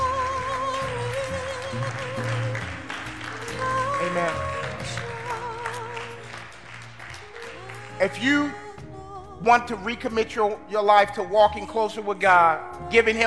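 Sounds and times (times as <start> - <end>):
audience applauding: 0.0 - 8.6
speech: 4.1 - 5.0, 8.0 - 8.6, 9.4 - 13.2.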